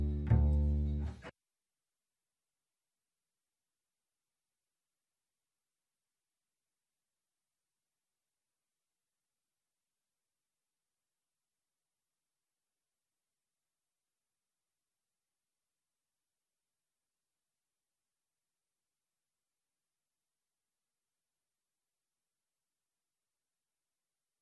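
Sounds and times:
upright bass: 0:00.0 - 0:01.3.

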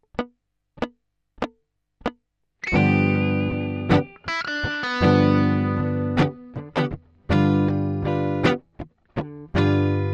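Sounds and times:
blues guitar: 0:00.0 - 0:10.1.

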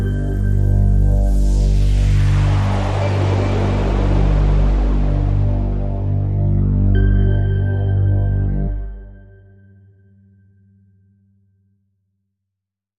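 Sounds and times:
synth pad: 0:00.0 - 0:10.0.

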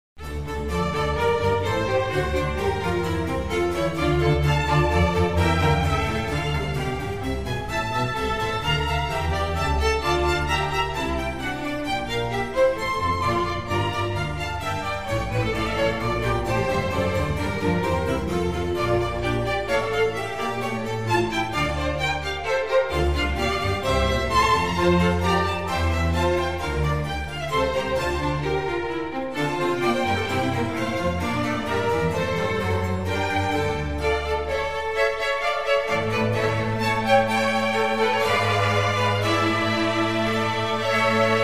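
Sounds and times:
string concerto in D minor: 0:00.2 - 0:41.4.

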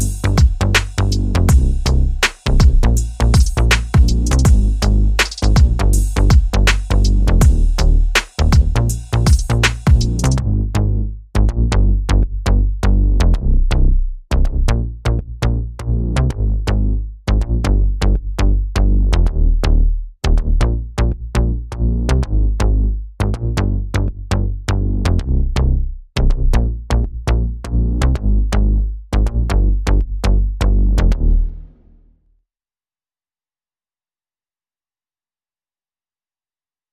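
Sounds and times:
drums: 0:00.0 - 0:10.4
bass: 0:00.0 - 0:32.1.

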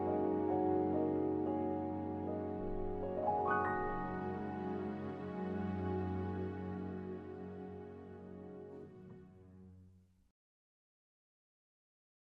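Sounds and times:
strings: 0:00.0 - 0:09.8.

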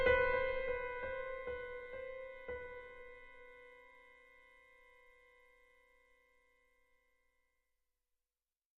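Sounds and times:
solo piano: 0:00.0 - 0:06.2.

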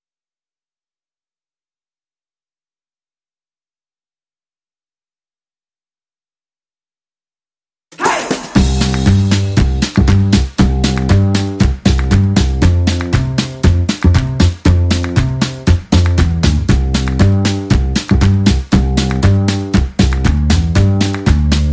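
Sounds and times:
rhythm and bass mix: 0:08.0 - 0:21.7.

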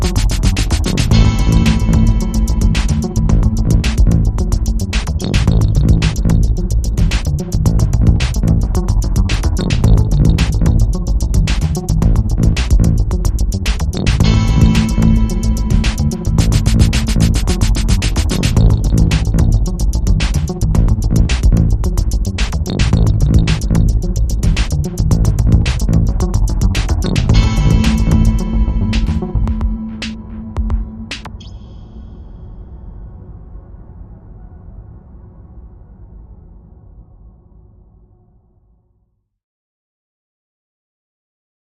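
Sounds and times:
drifting bass: 0:00.0 - 0:31.4.

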